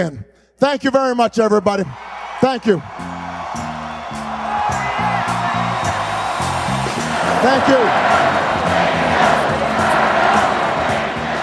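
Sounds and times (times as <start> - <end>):
speech: 0.0 - 3.1, 7.4 - 8.3
campaign rally crowd chanting a call-and-response slogan: 3.0 - 11.4.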